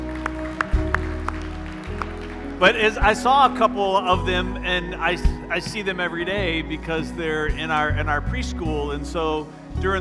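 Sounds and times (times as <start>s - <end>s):
people clapping: 0.0s - 3.8s
speech: 2.6s - 9.9s.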